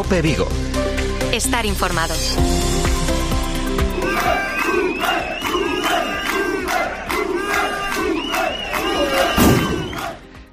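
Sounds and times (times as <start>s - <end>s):
speech: 0.1s - 0.7s, 1.3s - 2.7s
metal workers chanting slogans at a protest rally in Pontevedra province: 3.7s - 10.5s.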